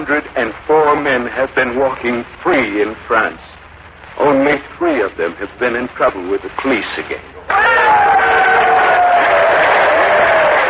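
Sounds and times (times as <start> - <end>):
speech: 0.0 - 3.6, 4.2 - 7.8
crowd applauding and cheering: 7.5 - 10.6.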